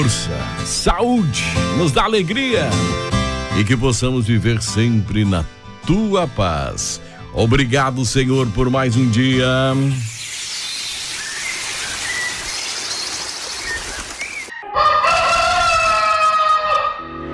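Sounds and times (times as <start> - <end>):
speech: 0.0 - 10.2
steady hiss: 9.5 - 14.5
rooster crowing at dawn: 14.5 - 17.1.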